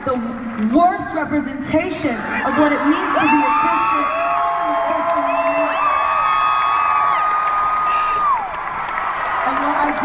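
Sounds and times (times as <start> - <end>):
speech: 0.1 - 4.2
audience cheering and whooping: 2.2 - 10.0
audience applause: 4.1 - 10.0.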